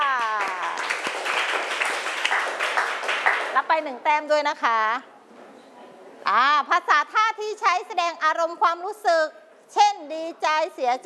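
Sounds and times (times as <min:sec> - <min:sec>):
class clapping hands: 0:00.0 - 0:03.7
speech: 0:03.7 - 0:05.1, 0:06.2 - 0:11.0.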